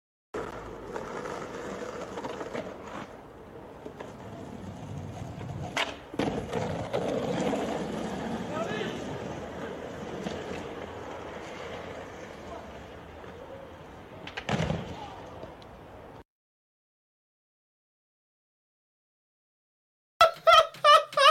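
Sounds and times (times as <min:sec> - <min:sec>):
skateboard rolling fast downhill: 0:00.4 - 0:16.2
laughter: 0:20.2 - 0:21.3.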